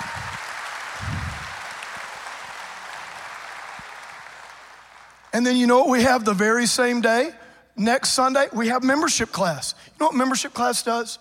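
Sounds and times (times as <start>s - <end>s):
church congregation clapping during an Easter service: 0.0s - 5.4s
speech: 5.4s - 11.1s.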